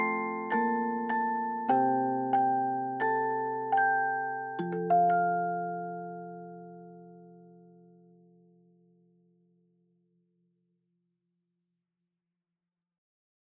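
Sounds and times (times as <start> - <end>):
music box: 0.0 - 7.7.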